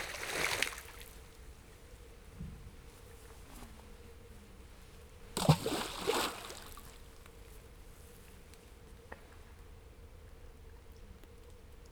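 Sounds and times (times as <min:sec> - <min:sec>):
stones thrown in all directions into water: 0:05.4 - 0:07.0.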